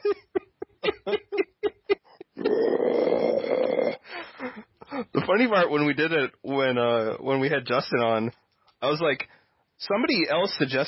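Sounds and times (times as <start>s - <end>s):
chuckling: 0.0s - 2.6s
voice imitating a death metal growl: 2.4s - 4.0s
speech: 5.3s - 10.8s.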